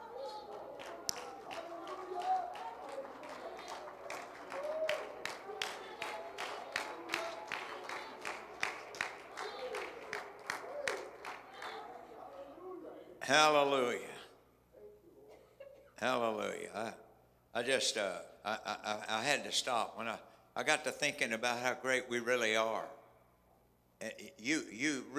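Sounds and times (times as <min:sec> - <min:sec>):
audience clapping in steady rhythm: 0:00.0 - 0:12.5
low murmur of crowd voices: 0:00.0 - 0:13.1
speech: 0:13.3 - 0:14.2, 0:16.0 - 0:17.0, 0:17.6 - 0:23.0, 0:24.0 - 0:25.1.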